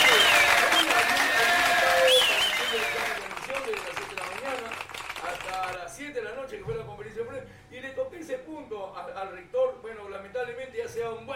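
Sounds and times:
applause: 0.0s - 5.8s.

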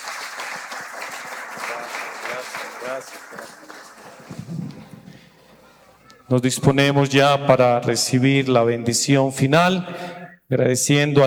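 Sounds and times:
audience applause: 0.0s - 5.8s
speech: 1.7s - 4.6s, 6.3s - 11.2s.

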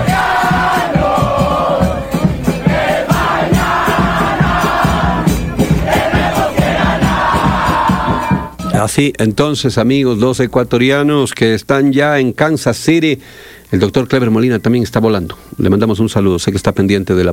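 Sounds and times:
large crowd of football fans shouting and chanting at fan fest: 0.0s - 8.7s
speech: 8.9s - 17.3s.

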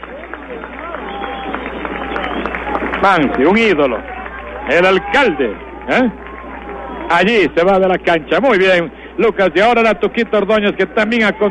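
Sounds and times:
stadium crowd applauding substituted player: 0.0s - 11.4s
speech: 3.0s - 6.2s, 7.1s - 11.4s.

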